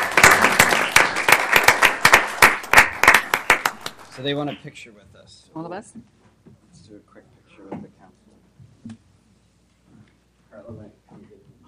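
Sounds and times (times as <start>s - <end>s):
group applauding: 0.0s - 4.5s
speech: 4.2s - 9.0s, 10.5s - 11.4s.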